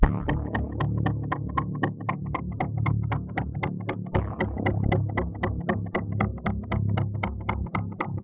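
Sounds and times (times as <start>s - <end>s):
polyphonic synth: 0.0s - 8.2s.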